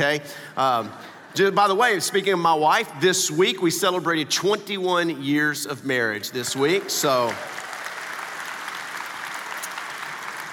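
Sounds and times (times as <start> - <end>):
speech: 0.0 - 7.6
audience applause during a sermon: 6.6 - 10.5.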